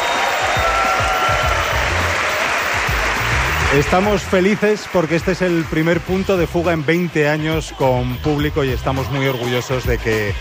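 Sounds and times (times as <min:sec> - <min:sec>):
live theatre audience applauding loudly: 0:00.0 - 0:07.0
speech: 0:03.7 - 0:10.4.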